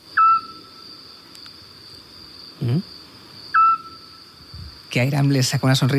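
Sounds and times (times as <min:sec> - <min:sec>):
Eurasian scops owl calling at night: 0:00.1 - 0:00.8, 0:03.5 - 0:04.2
speech: 0:02.6 - 0:03.0, 0:04.9 - 0:05.9.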